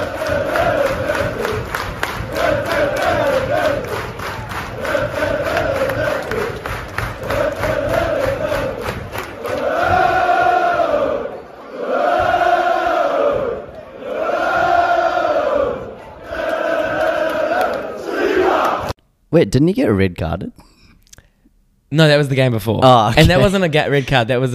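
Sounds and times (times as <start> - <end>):
steady rhythmic pulse: 0.0 - 17.8
football fans singing a record-breaking chant throughout a game: 0.0 - 19.0
speech: 19.4 - 20.7, 21.9 - 24.5.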